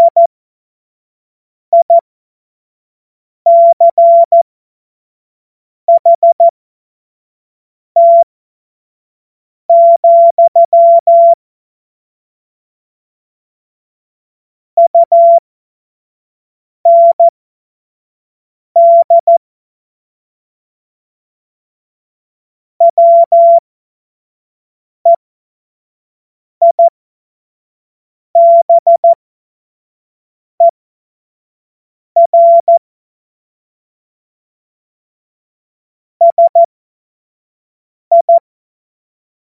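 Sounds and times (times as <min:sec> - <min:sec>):
CW morse code beeps: 0:00.0 - 0:00.3, 0:01.8 - 0:02.0, 0:03.5 - 0:04.4, 0:05.9 - 0:06.5, 0:08.0 - 0:08.2, 0:09.7 - 0:11.4, 0:14.8 - 0:15.4, 0:16.9 - 0:17.3, 0:18.8 - 0:19.4, 0:22.8 - 0:23.6, 0:26.6 - 0:26.9, 0:28.4 - 0:29.2, 0:32.2 - 0:32.8, 0:36.2 - 0:36.7, 0:38.1 - 0:38.4.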